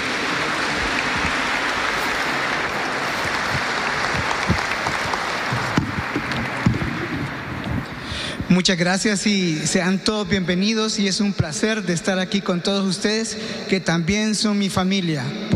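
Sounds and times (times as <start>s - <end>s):
crowd applauding to welcome a speaker: 0.0s - 8.5s
speech: 8.5s - 15.5s.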